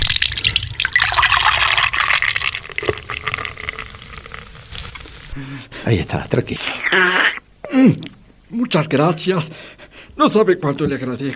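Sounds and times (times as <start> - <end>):
water pouring into a glass: 0.0 - 4.6
speech: 5.4 - 11.3.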